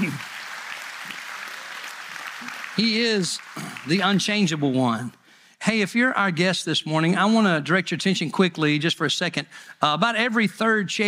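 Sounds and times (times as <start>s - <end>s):
church congregation clapping in praise during a service: 0.0s - 5.1s
speech: 2.4s - 11.0s.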